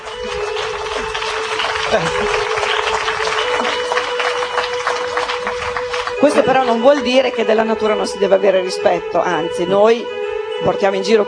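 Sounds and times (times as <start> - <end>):
audience applause: 0.0 - 7.2
speech: 1.9 - 2.4, 6.2 - 11.2.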